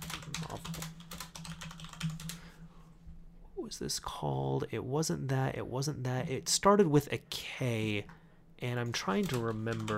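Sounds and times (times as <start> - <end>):
quiet typing on a computer keyboard: 0.0 - 2.4, 9.0 - 9.9
speech: 3.7 - 9.9.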